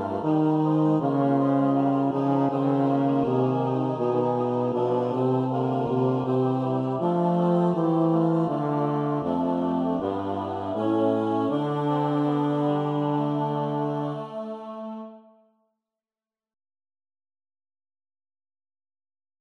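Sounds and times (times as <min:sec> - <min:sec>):
bass: 0:00.0 - 0:14.6.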